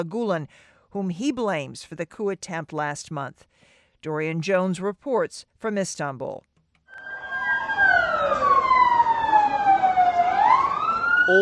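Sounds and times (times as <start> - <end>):
speech: 0.0 - 6.5, 11.3 - 11.4
ambulance siren wailing: 6.9 - 11.4.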